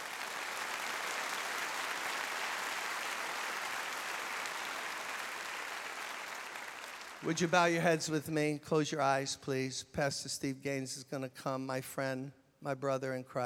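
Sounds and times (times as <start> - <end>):
audience clapping hands: 0.0 - 7.9
speech: 7.2 - 13.4.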